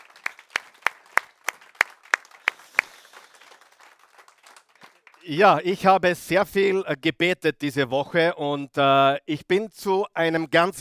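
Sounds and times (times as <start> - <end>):
audience rhythmic clapping in welcome: 0.0 - 5.6
speech: 5.2 - 10.8.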